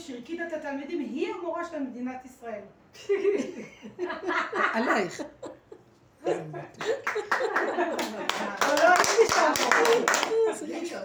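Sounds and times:
speech: 0:00.1 - 0:05.5, 0:06.2 - 0:11.0
laughter: 0:03.0 - 0:11.0
clapping: 0:06.8 - 0:10.4.

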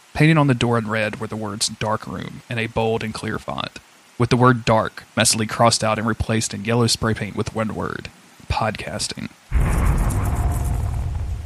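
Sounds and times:
speech: 0:00.2 - 0:10.3
crash of thunder: 0:09.5 - 0:11.4.

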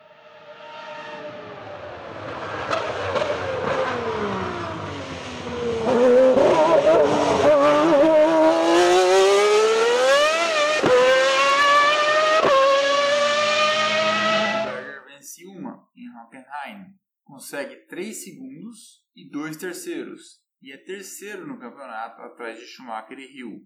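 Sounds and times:
Ferrari F412 T1 Formula 1 car with V12 engine racing past: 0:00.0 - 0:15.0
speech: 0:19.4 - 0:23.6.

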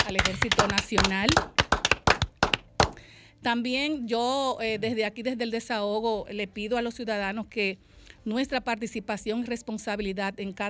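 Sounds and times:
sharp hand claps: 0:00.0 - 0:03.0
speech: 0:00.1 - 0:01.6, 0:03.4 - 0:10.6.

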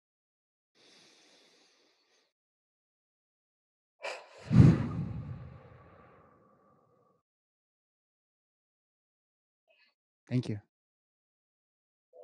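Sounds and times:
deep grounding breath: 0:00.8 - 0:02.3, 0:04.0 - 0:07.2
speech: 0:10.3 - 0:10.7.

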